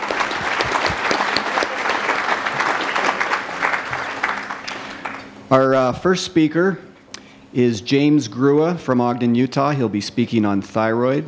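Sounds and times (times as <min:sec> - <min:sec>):
audience applause for the sponsors: 0:00.0 - 0:05.2
speech: 0:05.5 - 0:06.9, 0:07.6 - 0:11.2.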